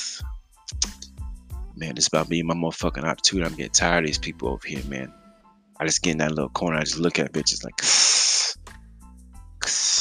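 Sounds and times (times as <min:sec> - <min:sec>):
voice imitating a snake hiss: 0:00.0 - 0:01.0, 0:07.8 - 0:08.6, 0:09.6 - 0:09.9
speech: 0:01.8 - 0:05.2, 0:05.8 - 0:08.1.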